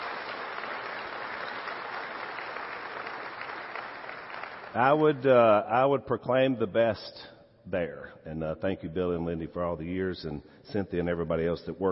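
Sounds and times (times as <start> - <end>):
audience applause: 0.0 - 5.1
speech: 4.7 - 11.8.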